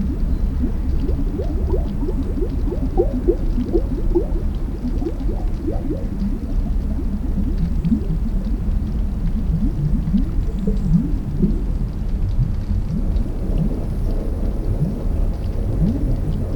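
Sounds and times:
underwater air bubbles rising to the surface of the ocean: 0:00.0 - 0:16.5.

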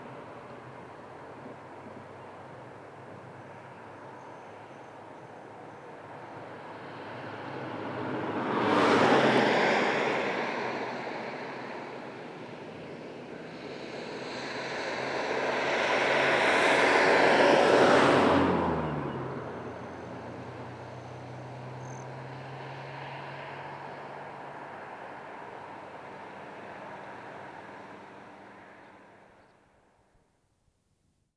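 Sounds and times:
cars passing on a distant highway: 0:00.0 - 0:29.8.

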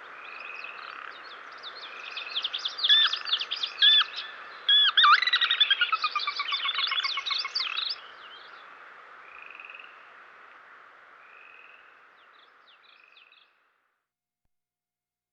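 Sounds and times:
Sora Rail calling in western North America: 0:02.8 - 0:07.9.

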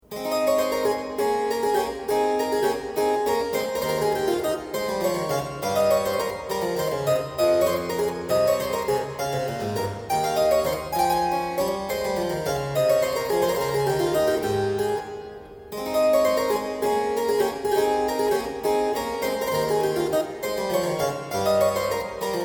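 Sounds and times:
keyboard minuet in A: 0:00.0 - 0:22.4.

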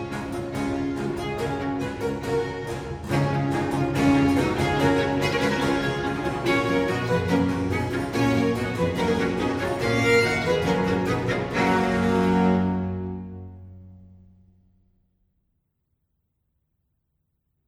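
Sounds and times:
string orchestra playing an allegro: 0:00.0 - 0:14.0.

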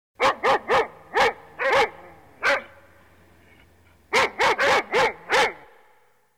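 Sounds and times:
dog barking: 0:00.2 - 0:02.8, 0:04.1 - 0:05.8.

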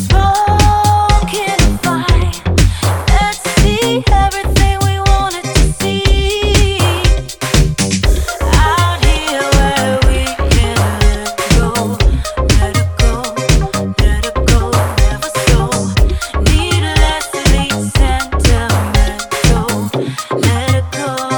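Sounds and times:
dub music: 0:00.0 - 0:21.3.

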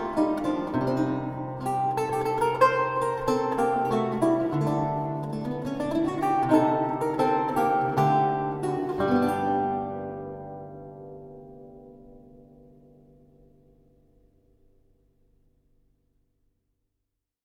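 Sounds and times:
archlute playing a gagliarda: 0:00.0 - 0:11.2.

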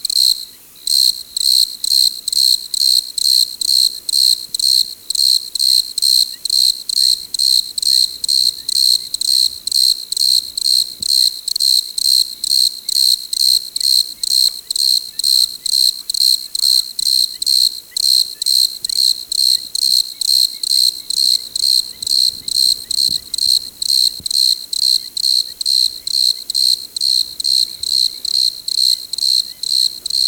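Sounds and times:
chorus of desert crickets: 0:00.0 - 0:30.2.

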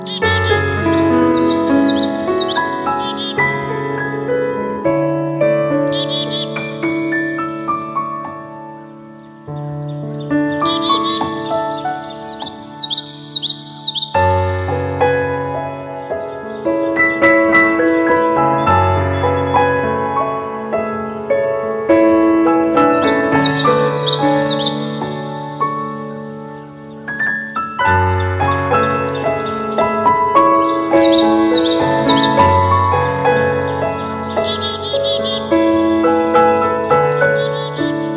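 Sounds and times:
Common yellowthroat song: 0:00.0 - 0:38.1
piano music: 0:00.0 - 0:38.1.

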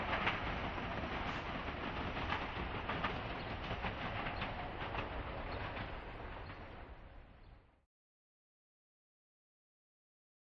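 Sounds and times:
electric train approaching and passing fast: 0:00.0 - 0:07.4.

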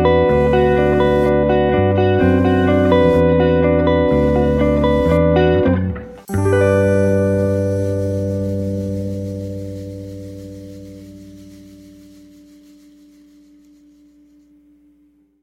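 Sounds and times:
six-string guitar lullaby: 0:00.0 - 0:14.5.

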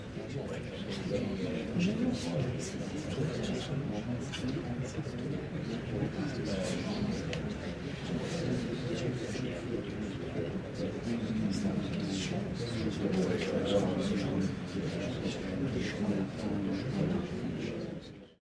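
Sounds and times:
large crowd quiet murmur in a church: 0:00.0 - 0:18.4.

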